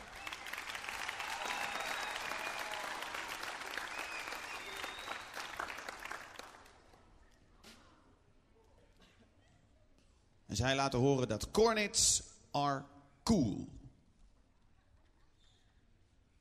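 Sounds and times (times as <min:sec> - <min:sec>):
audience applause: 0:00.0 - 0:06.9
speech: 0:10.5 - 0:13.8.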